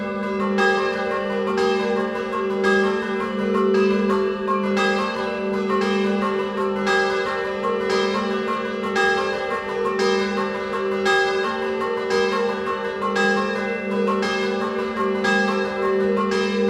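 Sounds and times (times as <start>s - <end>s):
scampanottata bell ringing in Carnia: 0.0s - 16.6s.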